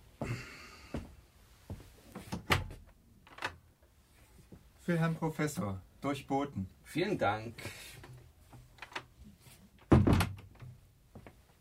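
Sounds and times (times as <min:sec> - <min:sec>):
speech: 0:04.9 - 0:07.9
door opening with wooden thuds and clunks: 0:09.8 - 0:11.3.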